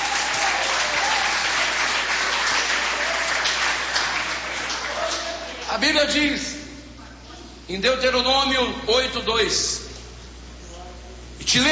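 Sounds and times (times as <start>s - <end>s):
audience clapping hands: 0.0s - 5.7s
speech: 5.8s - 6.5s, 7.7s - 9.8s, 11.5s - 11.7s.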